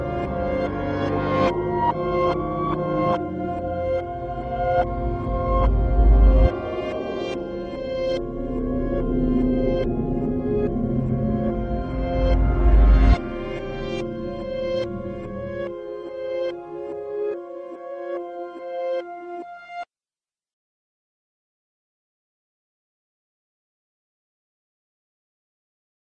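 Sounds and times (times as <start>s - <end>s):
creepy music box reversed: 0.0s - 17.1s.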